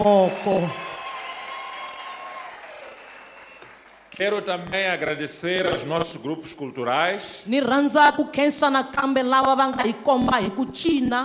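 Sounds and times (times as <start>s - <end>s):
speech: 0.0s - 0.8s, 4.2s - 11.2s
audience applause for the pastors: 0.0s - 4.1s.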